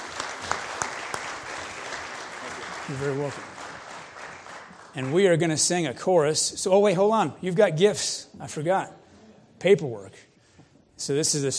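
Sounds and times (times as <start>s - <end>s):
audience applause for a family at a church service: 0.0s - 5.9s
speech: 2.9s - 3.6s, 5.0s - 9.0s, 9.6s - 10.3s, 11.0s - 11.5s.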